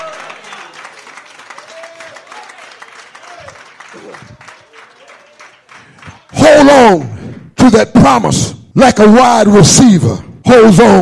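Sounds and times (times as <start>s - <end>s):
audience clapping hands: 0.0s - 7.0s
speech: 4.1s - 4.4s, 6.9s - 10.9s.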